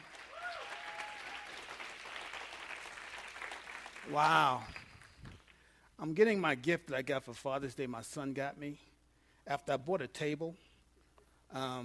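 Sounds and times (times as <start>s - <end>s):
audience clapping: 0.0s - 5.7s
speech: 4.1s - 4.8s, 6.0s - 8.9s, 9.5s - 10.6s, 11.5s - 11.8s.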